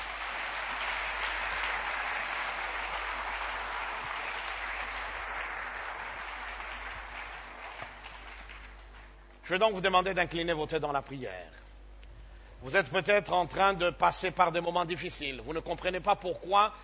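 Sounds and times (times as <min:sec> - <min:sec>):
church congregation applauding: 0:00.0 - 0:09.2
speech: 0:09.5 - 0:11.6, 0:12.6 - 0:16.8.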